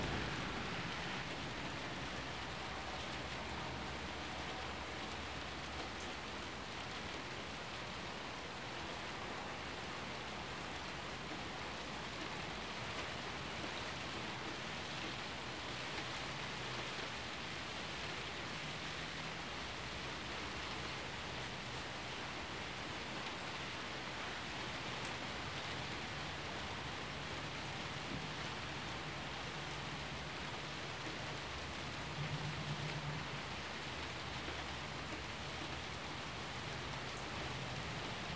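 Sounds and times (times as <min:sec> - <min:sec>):
rolling thunder: 0:00.0 - 0:03.2
heavy rain: 0:00.0 - 0:38.3.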